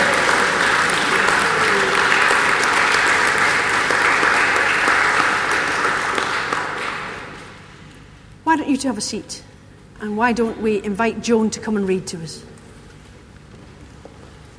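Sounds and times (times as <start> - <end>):
audience applause: 0.0 - 7.7
speech: 8.8 - 12.6.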